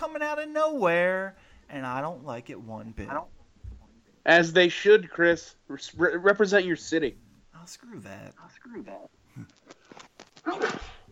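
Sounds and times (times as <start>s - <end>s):
speech: 0.0s - 3.4s, 4.2s - 10.9s
shuffling: 9.3s - 10.5s
person sneezing: 10.4s - 11.1s.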